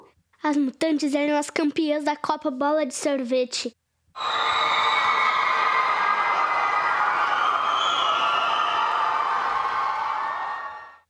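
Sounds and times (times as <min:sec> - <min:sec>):
speech: 0:00.5 - 0:04.5
large stadium crowd cheering and roaring with high whoops: 0:04.2 - 0:11.0.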